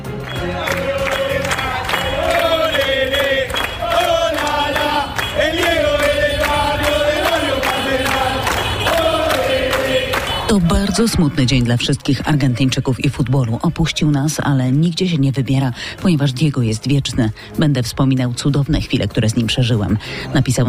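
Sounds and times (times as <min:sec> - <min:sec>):
crowd of football fans singing in the streets of Naples: 0:00.0 - 0:12.9
speech: 0:10.6 - 0:20.6.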